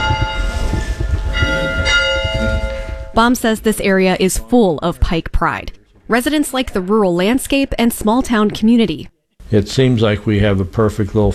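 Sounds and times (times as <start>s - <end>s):
school bell ringing: 0.0s - 3.8s
speech: 3.2s - 11.3s.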